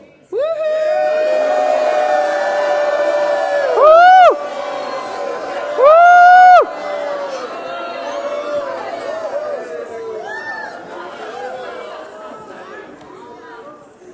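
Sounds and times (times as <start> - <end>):
crowd shouting and cheering with whoops: 0.3 - 12.5.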